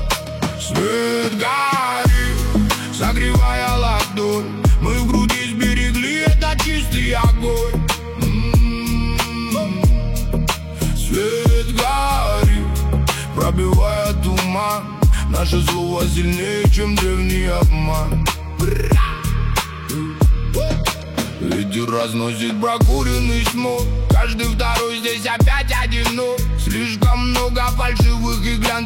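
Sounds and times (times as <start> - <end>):
deep atmosphere: 0.0 - 28.8.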